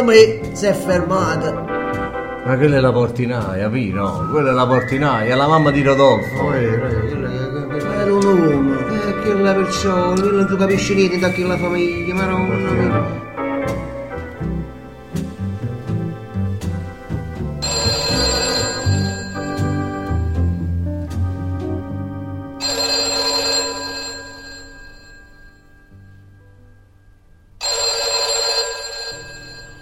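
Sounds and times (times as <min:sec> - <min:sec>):
speech: 0:00.0 - 0:01.7, 0:02.4 - 0:07.4, 0:09.3 - 0:13.2
music: 0:00.0 - 0:29.8
telephone bell ringing: 0:17.6 - 0:20.4, 0:22.6 - 0:26.0, 0:27.6 - 0:29.8.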